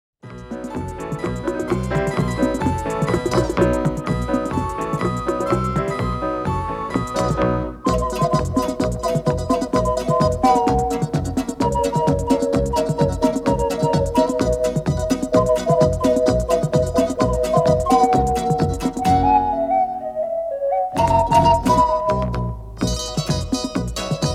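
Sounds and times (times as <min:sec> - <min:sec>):
ocarina: 0:00.4 - 0:24.3.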